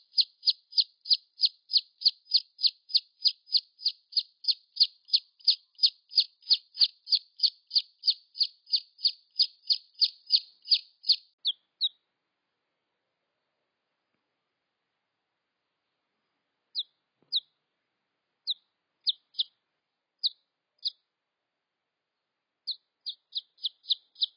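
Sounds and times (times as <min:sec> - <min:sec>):
red junglefowl chick peeps: 0:00.0 - 0:12.0, 0:16.7 - 0:17.6, 0:18.4 - 0:19.6, 0:20.2 - 0:21.0, 0:22.6 - 0:24.3.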